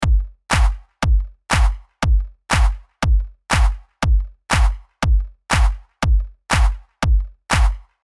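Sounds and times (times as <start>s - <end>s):
pre clap: 0.5s - 8.0s.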